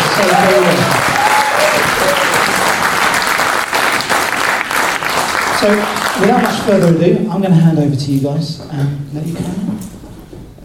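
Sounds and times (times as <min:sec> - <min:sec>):
audience applause: 0:00.0 - 0:06.9
speech: 0:00.2 - 0:01.1, 0:05.6 - 0:10.0.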